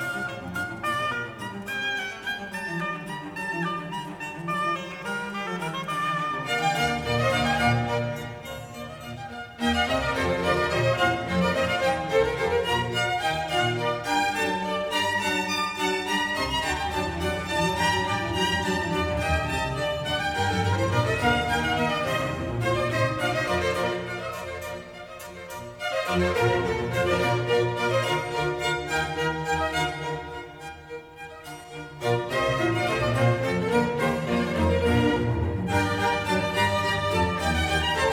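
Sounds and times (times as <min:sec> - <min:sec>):
oboe concerto allegro in B-flat: 0:00.0 - 0:38.1.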